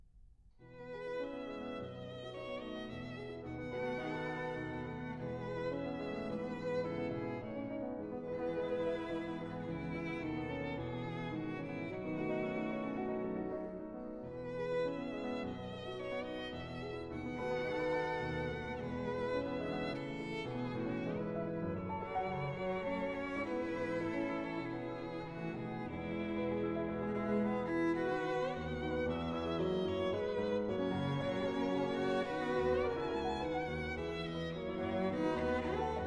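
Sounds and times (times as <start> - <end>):
piano trio: 0.9 - 36.0.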